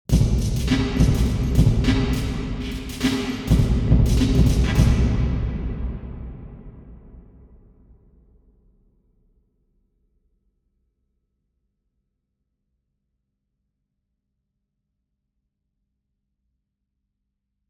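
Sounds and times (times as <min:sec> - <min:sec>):
drum in a nuclear reactor hall: 0:00.1 - 0:07.5.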